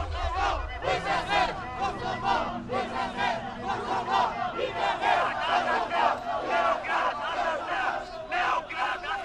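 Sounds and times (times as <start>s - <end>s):
low steady rumble: 0.0s - 5.4s
large crowd of protesters chanting slogans: 0.0s - 9.2s.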